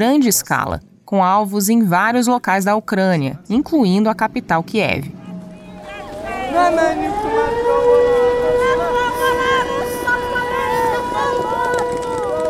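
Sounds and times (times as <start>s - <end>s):
speech: 0.0s - 5.2s
faint murmur of people: 3.3s - 12.4s
city civil defense air-raid siren wailing: 5.1s - 12.4s.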